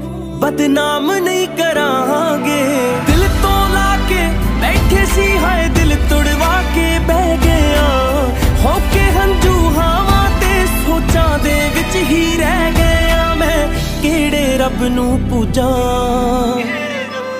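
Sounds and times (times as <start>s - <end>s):
Punjabi ringtone music: 0.5s - 17.3s.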